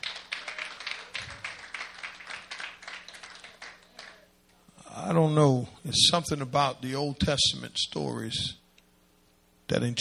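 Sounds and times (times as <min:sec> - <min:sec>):
audience hand clapping: 0:00.0 - 0:04.3
speech: 0:05.1 - 0:08.6, 0:09.7 - 0:10.0.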